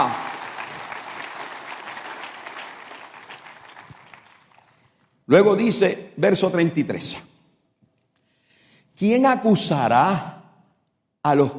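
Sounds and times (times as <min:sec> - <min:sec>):
audience applause: 0:00.0 - 0:05.1
speech: 0:05.3 - 0:07.3, 0:09.0 - 0:10.3, 0:11.2 - 0:11.5.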